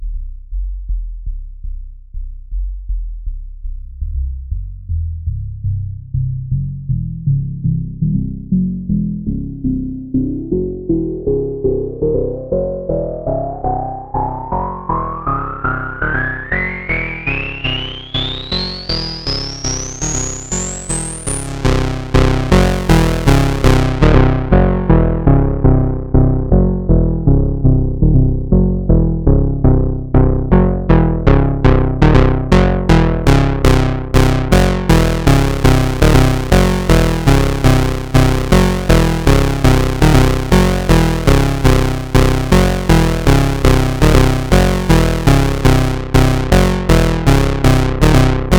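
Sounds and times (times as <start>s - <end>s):
big bad bass: 0.0s - 48.5s.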